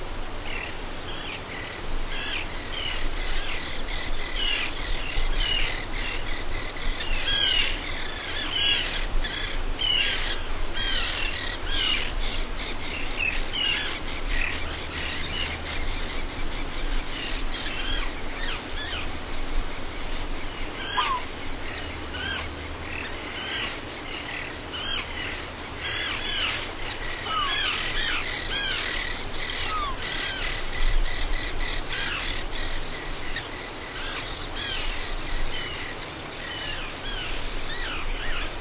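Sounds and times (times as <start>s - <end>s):
seabirds: 0.0s - 38.5s.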